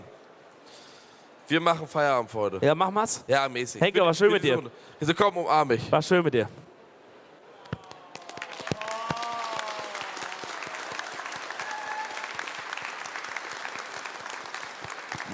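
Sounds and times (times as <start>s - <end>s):
speech: 1.5s - 6.7s
audience applause: 7.7s - 15.3s.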